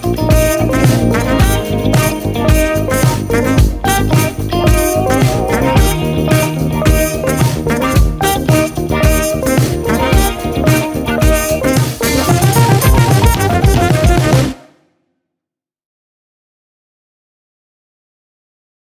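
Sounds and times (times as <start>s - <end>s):
four-bar count-in at 110 bpm: 0.0s - 14.7s.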